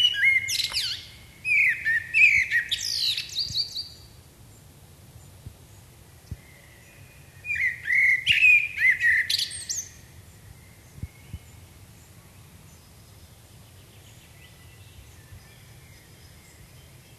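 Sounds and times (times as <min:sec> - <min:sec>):
common blackbird song: 0:00.0 - 0:17.1.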